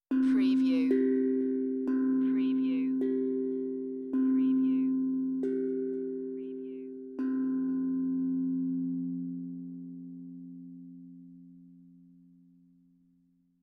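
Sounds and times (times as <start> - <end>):
meditative tongue drum tone: 0.0 - 8.9.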